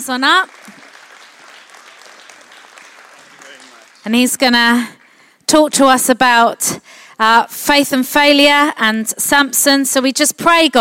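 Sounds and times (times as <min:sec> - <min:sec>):
speech: 0:00.0 - 0:00.7, 0:04.0 - 0:10.7
crowd applause: 0:00.3 - 0:05.2.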